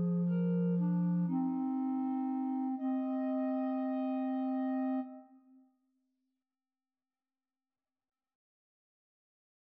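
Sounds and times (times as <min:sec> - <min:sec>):
clarinet trio: 0:00.0 - 0:05.4.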